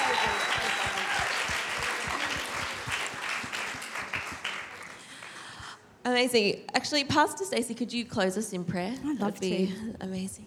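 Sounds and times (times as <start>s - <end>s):
audience applause: 0.0s - 5.4s
speech: 6.1s - 10.4s.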